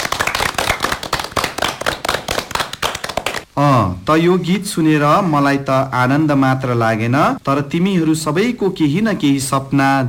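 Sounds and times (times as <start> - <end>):
children clapping for their teacher: 0.0 - 3.5
speech: 3.6 - 10.0.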